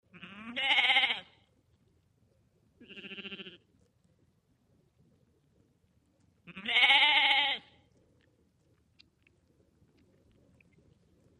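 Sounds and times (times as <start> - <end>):
sheep bleating: 0.1 - 1.3, 2.8 - 3.6, 6.5 - 7.7.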